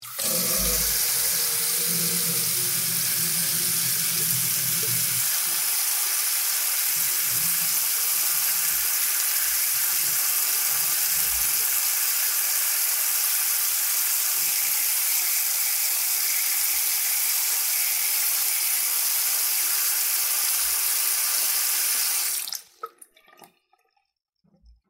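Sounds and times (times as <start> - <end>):
tap water running: 0.0 - 23.7.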